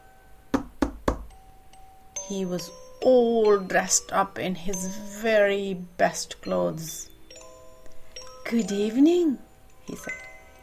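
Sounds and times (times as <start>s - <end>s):
knocks on a door: 0.6s - 1.3s
speech: 2.3s - 7.1s, 8.5s - 10.2s.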